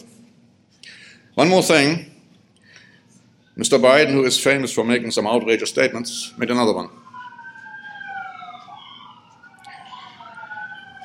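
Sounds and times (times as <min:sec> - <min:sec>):
speech: 0:01.4 - 0:02.1, 0:03.6 - 0:07.0
police sirens: 0:03.8 - 0:11.0
fire truck sirens: 0:04.8 - 0:11.0.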